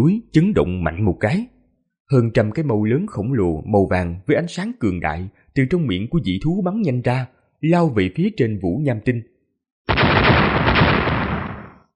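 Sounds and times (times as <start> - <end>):
speech: 0.0 - 9.3
series of rumbling explosions: 9.9 - 11.9.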